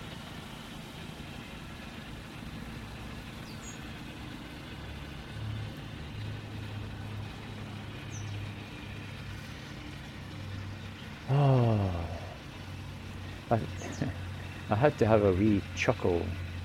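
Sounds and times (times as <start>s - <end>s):
lawnmower engine droning: 0.0s - 16.6s
speech: 13.5s - 13.8s, 14.8s - 16.4s.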